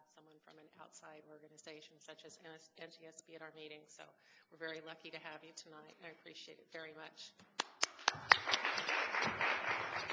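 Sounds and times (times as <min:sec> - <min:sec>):
speech: 0:00.8 - 0:08.4
crowd applause: 0:07.8 - 0:10.1.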